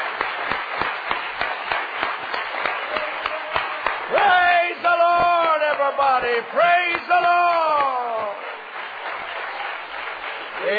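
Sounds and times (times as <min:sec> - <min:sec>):
audience hand clapping: 0:00.0 - 0:10.7
speech: 0:06.2 - 0:08.0.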